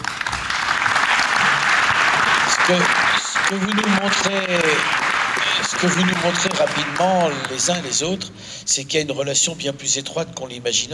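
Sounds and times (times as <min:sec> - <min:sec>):
audience applause: 0:00.0 - 0:08.0
speech: 0:02.7 - 0:05.0, 0:05.6 - 0:10.9.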